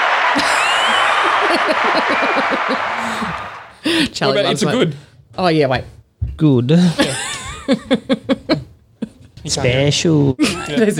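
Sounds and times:
applause sound effect: 0:00.0 - 0:03.9
laughter: 0:00.2 - 0:04.0, 0:07.0 - 0:09.2
speech: 0:01.5 - 0:07.0, 0:07.7 - 0:08.7, 0:09.4 - 0:10.9.

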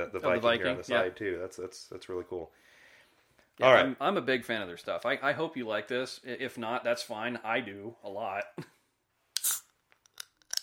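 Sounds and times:
speech: 0:00.0 - 0:02.7, 0:03.6 - 0:08.8
beer can popping open: 0:09.4 - 0:10.6.

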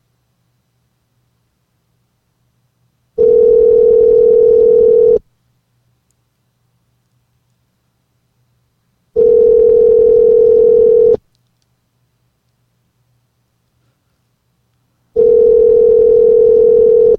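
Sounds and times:
ringback tone of an outgoing telephone call: 0:03.2 - 0:05.2, 0:09.2 - 0:11.2, 0:15.2 - 0:17.1.

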